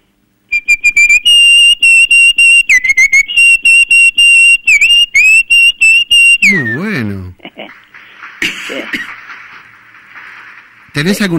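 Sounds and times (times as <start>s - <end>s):
person whistling an imitation of a cardinal's call: 0.5s - 7.0s
speech: 11.0s - 11.3s.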